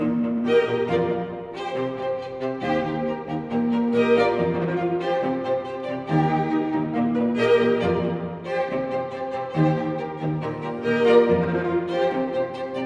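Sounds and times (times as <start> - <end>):
string quartet: 0.0 - 12.8.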